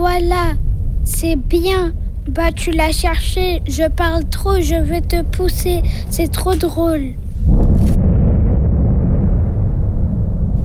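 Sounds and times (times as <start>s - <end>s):
speech: 0.1s - 7.2s
volcanic crater explosion: 7.2s - 10.6s.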